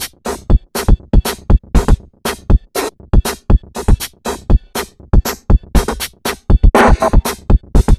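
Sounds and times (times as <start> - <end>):
junk hip downbeat dance groove: 0.0 - 7.9.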